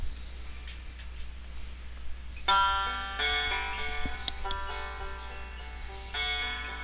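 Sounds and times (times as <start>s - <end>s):
Fender banjo: 2.5s - 6.8s.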